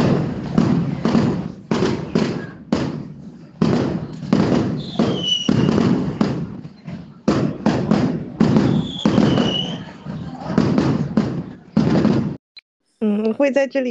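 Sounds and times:
strings of firecrackers exploding: 0.0 - 12.4
high whistling tones: 4.8 - 5.8, 8.6 - 10.0
speech: 13.4 - 13.8.

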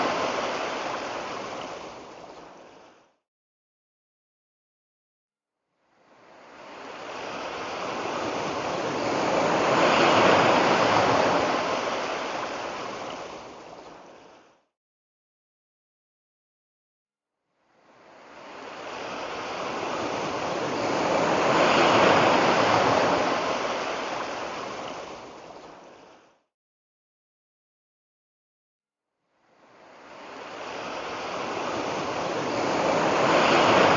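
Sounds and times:
ocean tide waves surging: 0.0 - 3.0, 6.3 - 14.5, 18.0 - 26.2, 29.7 - 33.9.

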